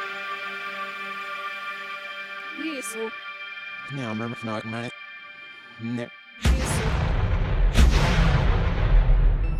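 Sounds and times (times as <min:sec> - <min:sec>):
speech: 0:02.8 - 0:03.3, 0:03.9 - 0:05.0, 0:05.8 - 0:06.9
explosion blast roar: 0:06.4 - 0:09.4.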